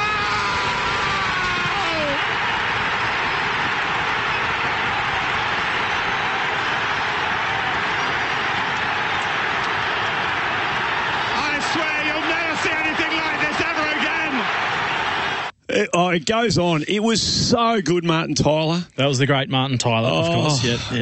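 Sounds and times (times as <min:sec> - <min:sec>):
football stadium crowd roaring after goal: 0:00.0 - 0:15.5
speech: 0:16.2 - 0:21.0.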